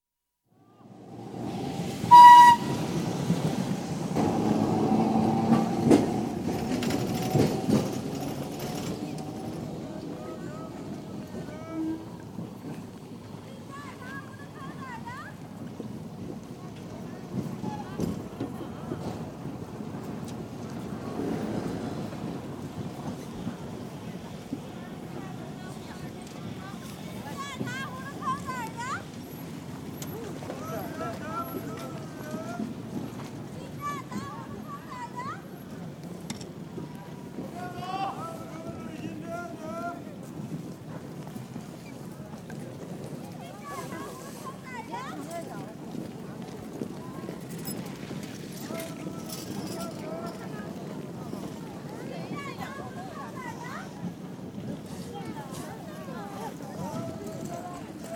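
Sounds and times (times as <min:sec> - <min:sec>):
street atmosphere in Changchun: 0:00.4 - 0:58.1
trams in Changchun: 0:00.5 - 0:58.1.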